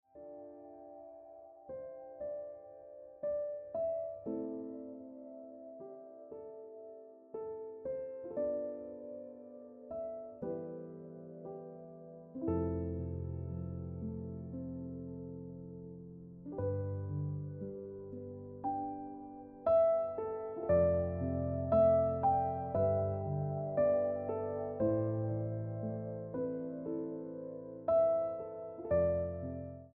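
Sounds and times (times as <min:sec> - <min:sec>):
piano ringtone music: 0:00.0 - 0:29.9.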